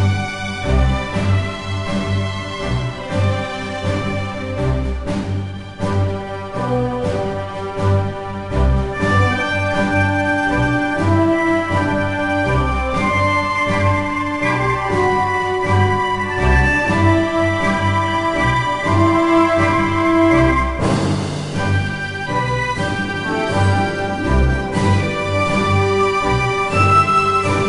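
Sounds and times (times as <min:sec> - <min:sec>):
game music: 0:00.0 - 0:27.6.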